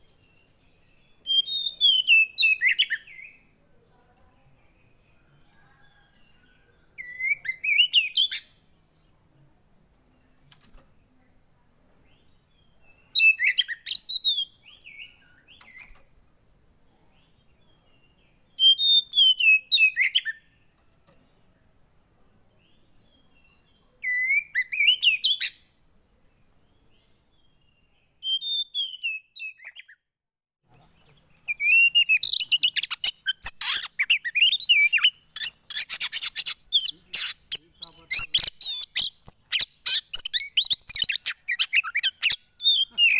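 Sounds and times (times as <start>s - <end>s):
Oriental magpie-robin song: 1.2s - 3.4s, 7.0s - 8.6s, 12.9s - 16.1s, 18.6s - 20.5s, 24.0s - 25.7s, 28.2s - 30.0s, 31.4s - 43.1s.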